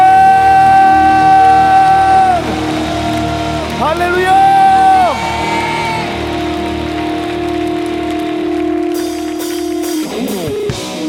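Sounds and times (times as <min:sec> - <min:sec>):
audience applause and cheering: 0:00.0 - 0:11.0.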